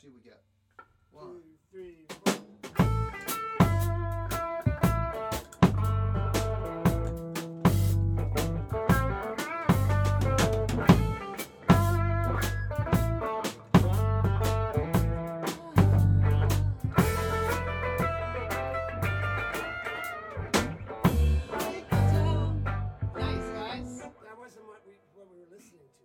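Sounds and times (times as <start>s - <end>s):
guitar breakdown: 2.7s - 24.2s.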